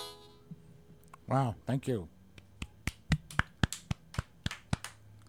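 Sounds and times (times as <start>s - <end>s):
speech: 1.3s - 2.1s
two people clapping hands: 2.3s - 5.2s.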